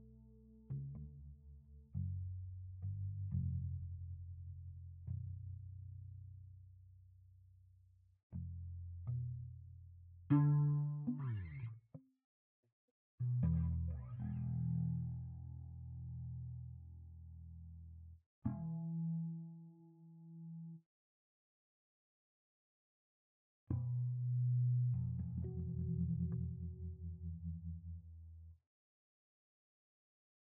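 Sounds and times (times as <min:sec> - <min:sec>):
electric bass: 0:00.0 - 0:06.6, 0:08.4 - 0:11.7, 0:13.2 - 0:19.2, 0:23.7 - 0:28.6.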